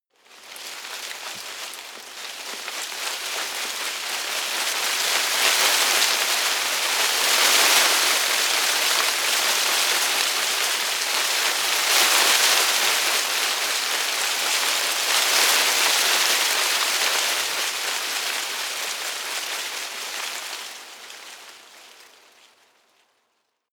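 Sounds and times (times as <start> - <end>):
small tree leaves rustling heavily: 0.0 - 23.7.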